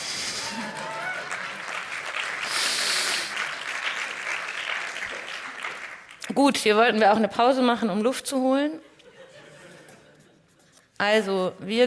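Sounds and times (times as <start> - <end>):
audience applause: 0.0 - 6.2
speech: 6.3 - 8.9, 11.0 - 11.8
laughter: 8.8 - 10.5.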